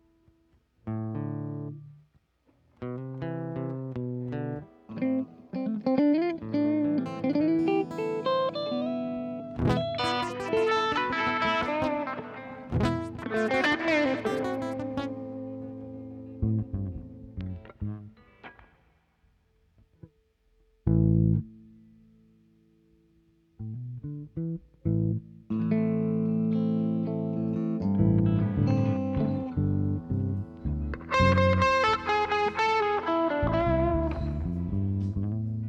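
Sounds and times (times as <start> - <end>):
guitars: 0.0 - 35.6
bass: 0.6 - 5.3, 9.6 - 10.8, 12.7 - 13.8, 14.6 - 18.2, 20.8 - 22.2, 23.4 - 35.6.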